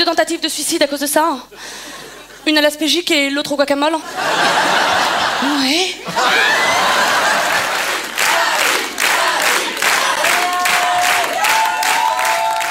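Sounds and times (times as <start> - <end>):
speech: 0.1 - 7.0
laughter: 4.0 - 8.2
crowd clapping after a comedy sketch: 6.2 - 12.6.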